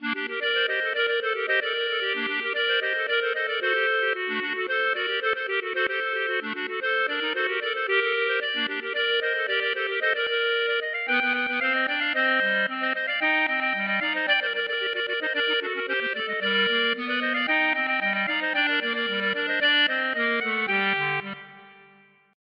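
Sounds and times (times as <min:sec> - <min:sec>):
klezmer music in three voices: 0:00.0 - 0:22.4.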